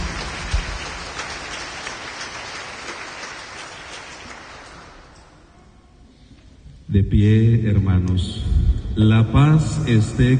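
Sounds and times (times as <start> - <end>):
crowd clapping hands loudly: 0.0 - 5.4
speech: 7.0 - 10.3.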